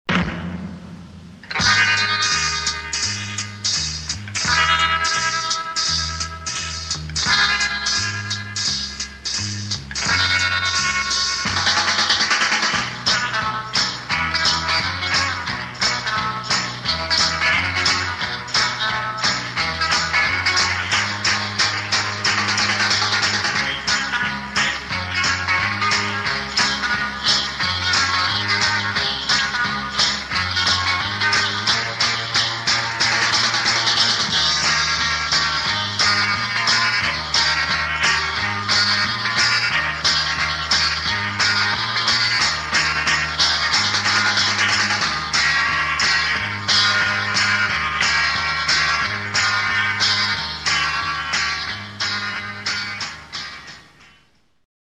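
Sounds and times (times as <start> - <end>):
backing track: 0.1 - 54.5.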